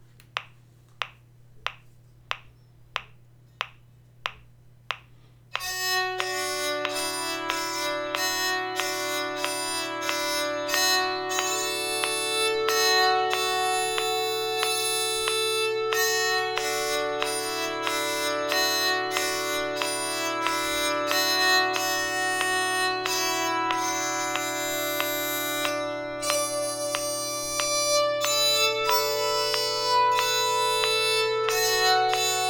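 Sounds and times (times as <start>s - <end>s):
bowed psaltery folk tune: 5.6s - 32.4s.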